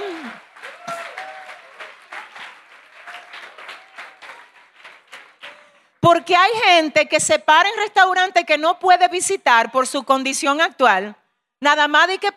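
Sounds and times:
audience applause: 0.0s - 5.9s
speech: 6.1s - 12.3s.

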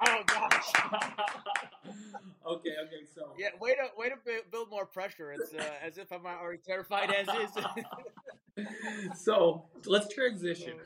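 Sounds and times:
rhythmic clapping: 0.0s - 2.0s
voiced cheering or whooping: 0.0s - 2.0s
laughter: 0.0s - 2.4s, 6.9s - 9.5s
speech: 0.9s - 1.4s, 2.8s - 10.8s.

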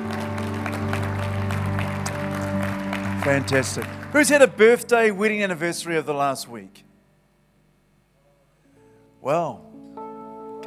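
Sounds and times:
sustained tonal music: 0.0s - 5.4s
church congregation applauding to welcome visitors: 0.0s - 5.8s
speech: 3.2s - 6.9s, 9.2s - 9.7s.

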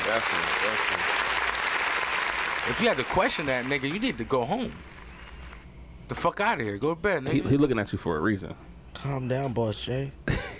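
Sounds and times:
round of applause: 0.0s - 5.6s
speech: 0.1s - 1.4s, 2.6s - 4.9s, 6.1s - 10.5s.

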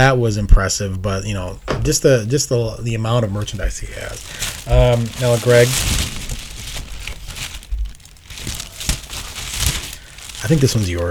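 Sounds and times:
speech: 0.0s - 6.2s, 10.4s - 11.1s
paper envelope being torn open: 3.3s - 11.1s.

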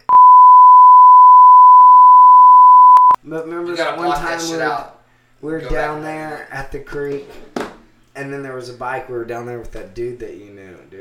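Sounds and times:
censor bleep over a name: 0.1s - 3.2s
speech: 3.3s - 7.5s, 8.2s - 11.0s.

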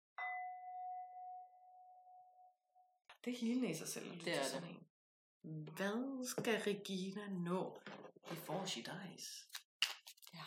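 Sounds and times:
small singing bowl being struck: 0.2s - 2.9s
speech: 3.2s - 9.6s.

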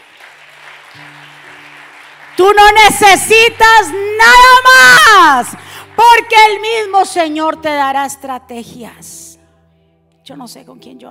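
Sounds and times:
audience applause: 0.0s - 3.0s
speech: 1.0s - 1.2s, 2.4s - 9.2s, 10.3s - 11.1s.

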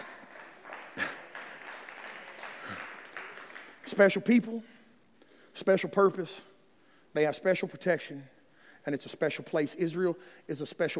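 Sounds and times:
audience applause: 0.0s - 4.0s
speech: 3.9s - 4.8s, 5.6s - 6.5s, 7.1s - 10.9s.

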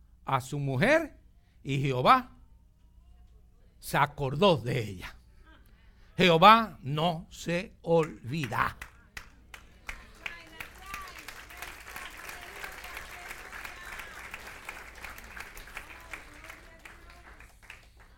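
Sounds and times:
speech: 0.3s - 2.4s, 3.8s - 5.2s, 6.2s - 8.9s
audience applause: 8.8s - 18.1s.

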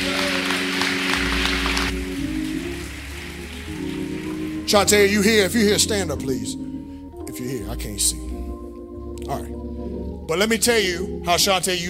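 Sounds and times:
audience clapping: 0.0s - 5.8s
sustained low musical tones humming: 0.0s - 11.8s
speech: 4.7s - 6.6s, 7.4s - 8.3s, 9.3s - 9.5s, 10.3s - 11.8s.

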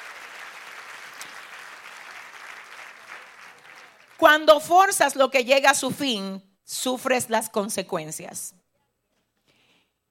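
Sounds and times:
audience applause: 0.0s - 4.2s
speech: 4.2s - 8.6s.

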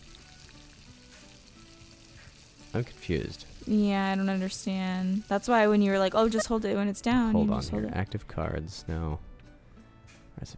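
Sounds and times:
steak sizzling on a grill in a video game: 0.0s - 6.3s
speech: 2.7s - 9.3s.

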